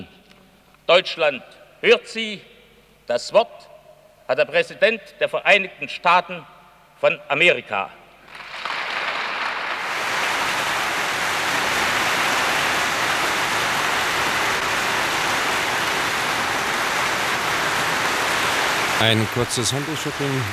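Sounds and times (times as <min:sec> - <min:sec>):
speech: 0:00.9 - 0:02.5, 0:03.1 - 0:03.7, 0:04.3 - 0:08.0, 0:19.0 - 0:20.5
enthusiastic applause from a standing audience: 0:08.3 - 0:20.5.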